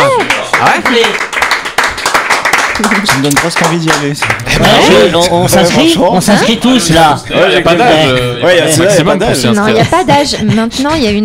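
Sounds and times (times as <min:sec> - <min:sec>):
voices calling out and cheering: 0:00.0 - 0:01.0
people applauding: 0:00.0 - 0:05.4
speech: 0:00.9 - 0:01.3, 0:02.8 - 0:11.2
laughter: 0:09.1 - 0:11.2.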